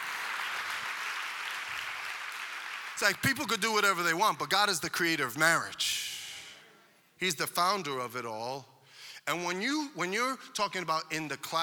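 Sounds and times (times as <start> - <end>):
audience clapping: 0.0 - 3.8
speech: 3.0 - 6.2, 7.2 - 11.6.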